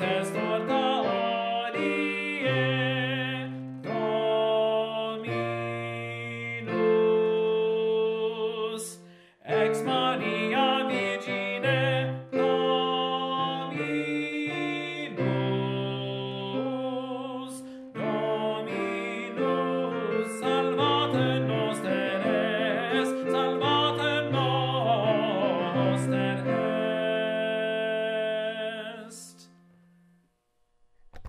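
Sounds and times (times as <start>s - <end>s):
slow tenor: 0.0s - 29.8s.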